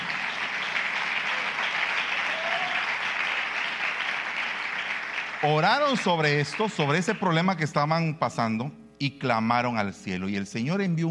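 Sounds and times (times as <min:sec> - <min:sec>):
audience applause: 0:00.0 - 0:07.4
speech: 0:05.4 - 0:11.0.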